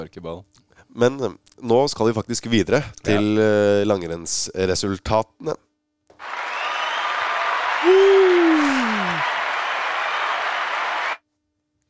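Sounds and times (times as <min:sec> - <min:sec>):
speech: 0:00.0 - 0:05.6
applause and cheering: 0:06.1 - 0:11.2.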